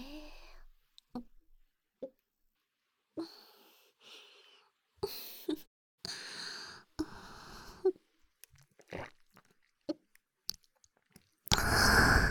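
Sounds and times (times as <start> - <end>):
ear licking recorded with binaural microphone: 8.4 - 12.2.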